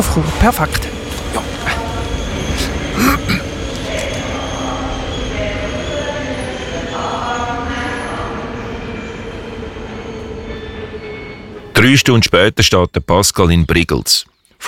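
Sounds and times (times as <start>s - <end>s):
speech: 0.0s - 1.8s, 3.0s - 3.5s, 11.8s - 14.6s
train departing from a station platform: 0.0s - 12.8s
faint squeals: 0.8s - 11.8s.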